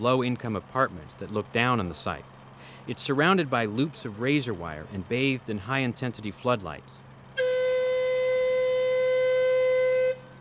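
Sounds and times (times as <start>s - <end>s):
speech: 0.0s - 7.1s
long shrill warning whistle blast: 7.4s - 10.4s.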